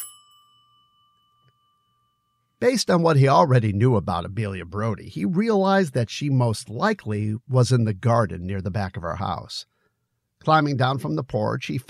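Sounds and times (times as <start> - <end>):
hand-turned doorbell at a front door: 0.0 - 2.6
speech: 2.6 - 9.7, 10.4 - 11.8.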